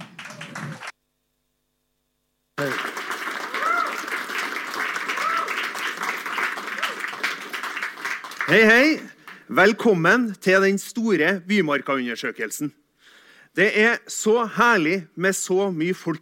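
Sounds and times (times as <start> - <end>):
warm audience applause: 0.0 - 0.9, 2.6 - 9.5
speech: 8.5 - 12.8, 13.6 - 16.1.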